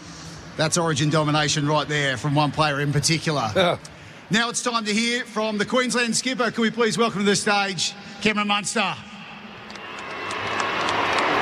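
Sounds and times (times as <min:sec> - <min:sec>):
speech: 0:00.6 - 0:09.1
stadium crowd booing: 0:09.6 - 0:11.3.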